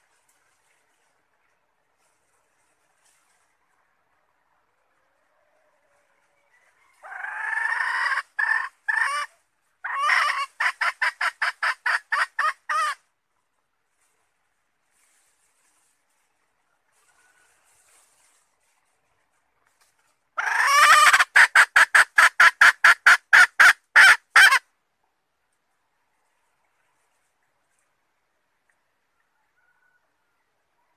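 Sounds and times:
Red junglefowl hen cackle: 7.0s - 13.0s, 20.4s - 24.6s.

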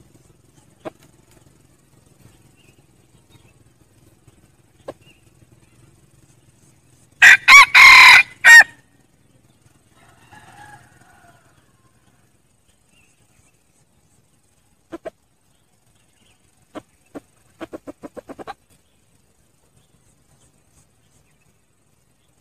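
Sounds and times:
red junglefowl crowing: 7.2s - 8.8s, 9.9s - 12.1s.

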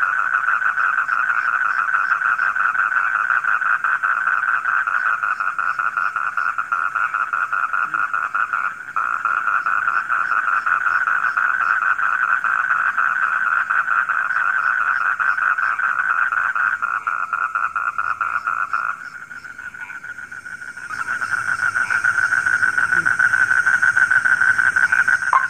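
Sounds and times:
frog chorus croaking: 0.0s - 25.4s
soft high hiss: 18.9s - 25.4s.

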